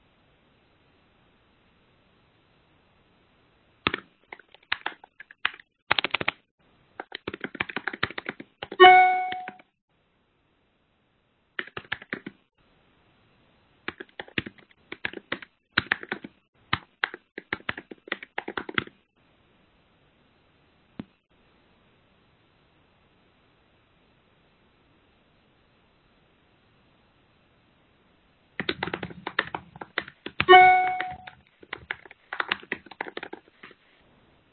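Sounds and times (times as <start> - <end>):
computer keyboard typing a written response: 3.8 - 6.4, 7.0 - 9.6, 11.6 - 12.4, 13.9 - 19.0, 28.6 - 33.8
brief ringing chime: 8.8 - 9.6, 30.5 - 31.3.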